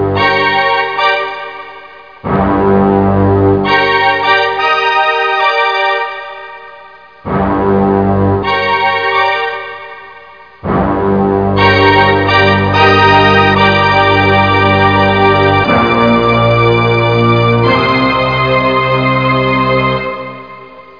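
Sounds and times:
orchestra: 0.1 - 20.9.

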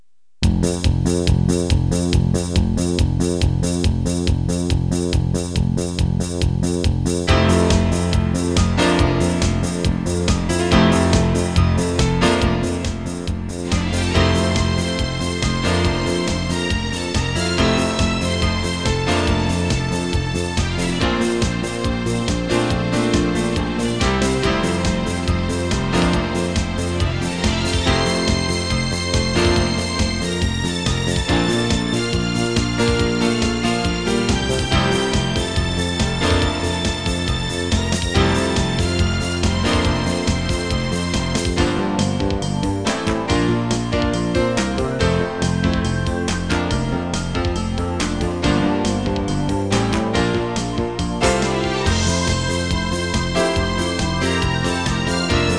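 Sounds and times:
disco music: 0.0 - 55.5.

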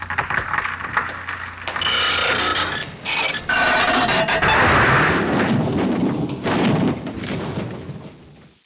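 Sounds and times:
scratching: 0.0 - 6.3.

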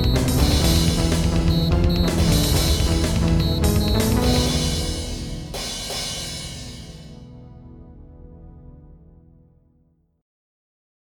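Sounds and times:
techno music: 0.0 - 7.3.

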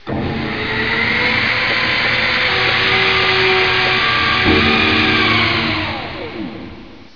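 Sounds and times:
drill: 0.0 - 7.1.

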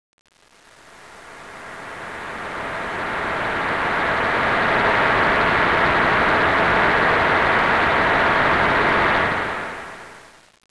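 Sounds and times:
synth pad: 0.8 - 10.3.

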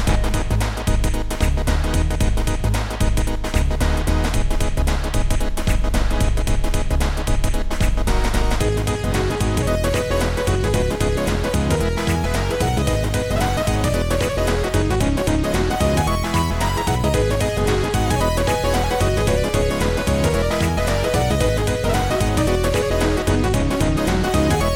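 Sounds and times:
tune: 0.1 - 24.7.

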